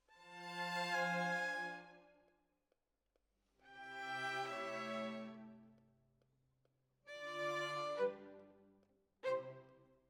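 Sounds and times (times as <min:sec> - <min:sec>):
violins: 0:00.2 - 0:02.0, 0:03.7 - 0:05.6, 0:07.1 - 0:08.6, 0:09.2 - 0:09.7.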